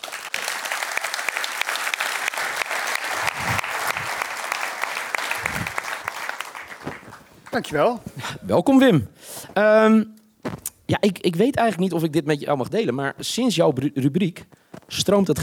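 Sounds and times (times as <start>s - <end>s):
audience applause: 0.0s - 8.2s
speech: 7.6s - 10.2s, 11.0s - 15.4s.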